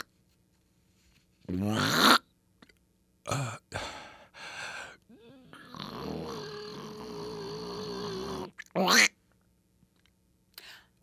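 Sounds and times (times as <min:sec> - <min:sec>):
speech: 0:01.5 - 0:02.1
person imitating a wheeze as a sound effect: 0:01.5 - 0:02.2, 0:05.0 - 0:09.2.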